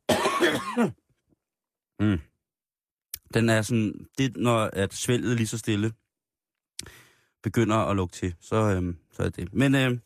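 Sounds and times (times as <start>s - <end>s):
person coughing: 0.0s - 1.0s
throat clearing: 0.1s - 1.0s, 2.0s - 2.3s
speech: 0.4s - 1.0s, 2.0s - 2.3s, 3.3s - 6.0s, 6.8s - 10.0s.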